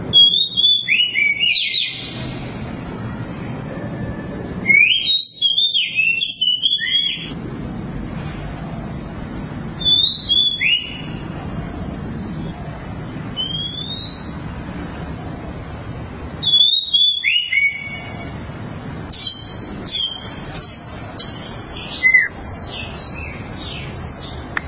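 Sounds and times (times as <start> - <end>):
Oriental magpie-robin singing: 0.1 - 2.6, 4.3 - 7.4, 9.8 - 12.6, 13.3 - 14.4, 16.4 - 18.3, 19.0 - 24.6.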